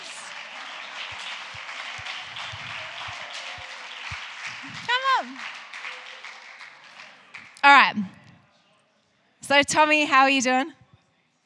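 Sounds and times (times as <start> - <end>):
audience clapping: 0.0 - 7.6
speech: 9.5 - 10.8.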